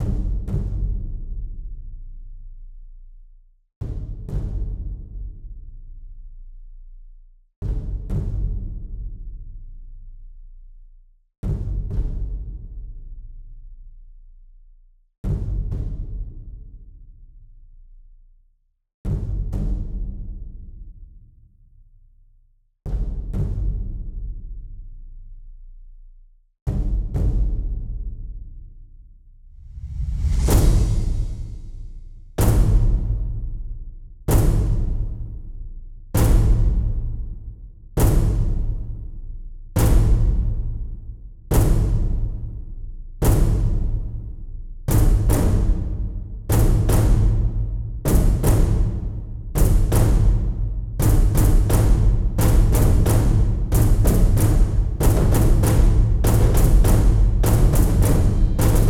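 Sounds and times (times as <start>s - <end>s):
percussion: 0.0s - 18.4s, 19.0s - 58.8s.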